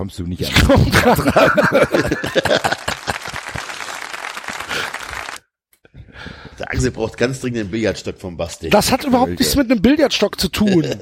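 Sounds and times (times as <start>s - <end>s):
speech: 0.0s - 3.0s, 6.8s - 11.0s
laughter: 0.4s - 5.4s
audience applause: 1.5s - 5.4s.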